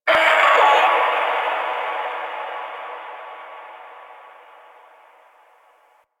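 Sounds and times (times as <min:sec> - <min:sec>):
distant creatures in a landscape: 0:00.0 - 0:06.0.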